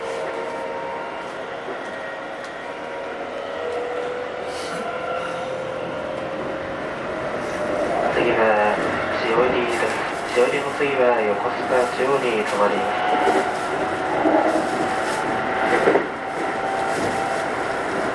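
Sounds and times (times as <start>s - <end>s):
Keikyu New 1000 series train motor hum: 0.0s - 18.1s
voices: 8.0s - 13.3s.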